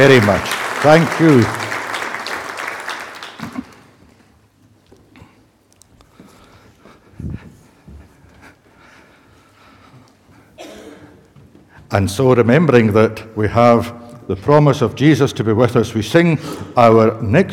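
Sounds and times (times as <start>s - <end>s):
speech: 0.0s - 1.6s, 11.9s - 17.5s
audience applause: 0.0s - 4.0s.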